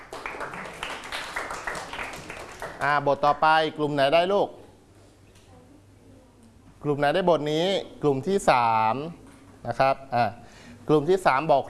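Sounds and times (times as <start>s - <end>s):
children in a Thai classroom clapping for a classmate: 0.0s - 3.0s
speech: 2.8s - 4.6s, 6.8s - 11.6s.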